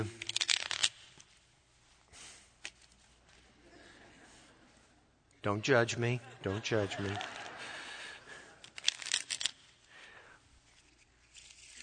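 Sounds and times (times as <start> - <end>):
playing cards shuffled for solitaire: 0.0 - 4.9, 6.7 - 11.8
laughter: 3.6 - 5.0, 5.7 - 8.8
speech: 5.4 - 7.4.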